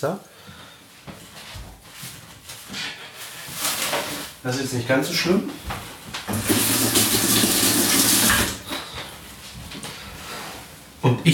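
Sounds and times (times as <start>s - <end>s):
speech: 0.0s - 0.5s, 4.4s - 6.6s, 11.2s - 11.3s
water streaming from a tap into a cooking pot: 6.3s - 8.7s.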